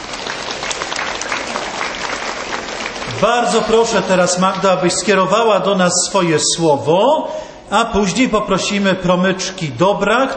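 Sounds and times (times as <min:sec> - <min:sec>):
crowd applause: 0:00.0 - 0:05.1
speech: 0:03.2 - 0:10.3.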